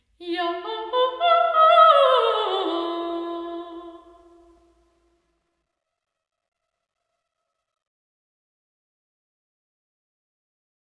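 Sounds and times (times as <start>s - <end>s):
choir singing in St Albans Lady Chapel: 0.2s - 4.5s.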